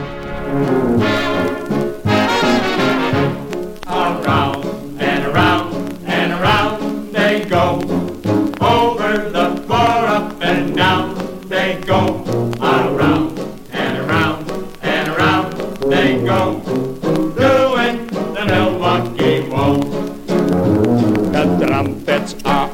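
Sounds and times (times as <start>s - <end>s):
old-time waltz by a brassy band: 0.0s - 22.7s
tuba pumping out low notes: 0.0s - 22.7s
person singing: 3.8s - 22.7s.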